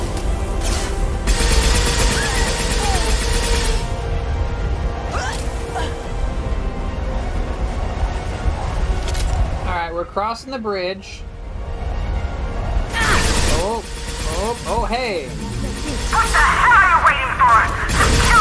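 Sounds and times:
video game combat soundscape: 0.0 - 10.4, 11.2 - 18.4
video game gunfire with disruptor ammo: 0.6 - 4.0, 12.9 - 18.4
speech: 10.2 - 11.3, 14.9 - 15.5.

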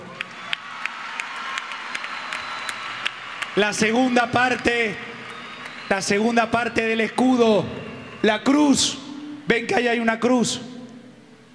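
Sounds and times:
children applauding: 0.0 - 7.4
speech: 3.6 - 5.1, 5.9 - 10.7.

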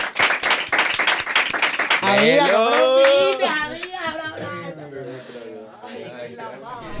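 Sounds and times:
applause: 0.0 - 4.0
speech: 2.1 - 2.7.

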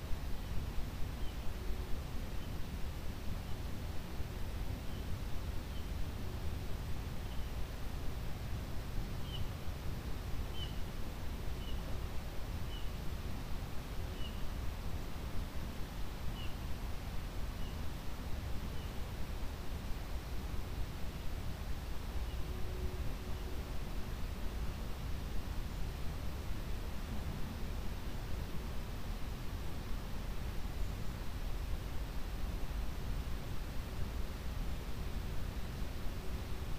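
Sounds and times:
faint low tone humming: 0.0 - 36.7
steady forest rushing hiss: 0.0 - 36.7.

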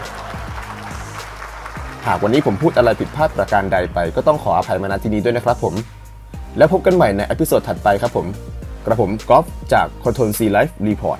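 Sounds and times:
loud applause: 0.0 - 3.5
speech: 2.0 - 6.0, 6.6 - 11.1.

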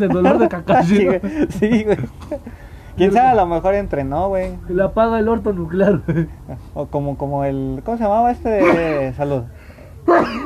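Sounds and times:
laughter: 0.0 - 2.6
speech: 0.0 - 10.4
sneeze: 8.6 - 9.0, 10.0 - 10.4.

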